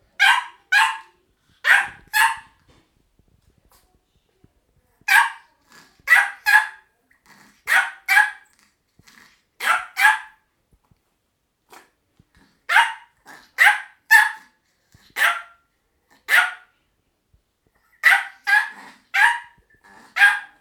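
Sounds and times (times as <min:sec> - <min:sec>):
joyful dog barking: 0:00.2 - 0:02.6, 0:05.1 - 0:05.5, 0:06.1 - 0:06.9, 0:07.7 - 0:08.4, 0:09.6 - 0:10.4, 0:12.7 - 0:14.5, 0:15.2 - 0:15.6, 0:16.3 - 0:16.7, 0:18.0 - 0:20.6.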